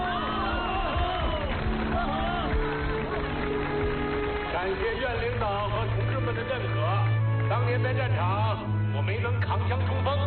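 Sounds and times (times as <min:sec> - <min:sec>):
audience applause: 0:00.0 - 0:06.4
speech: 0:06.3 - 0:10.2.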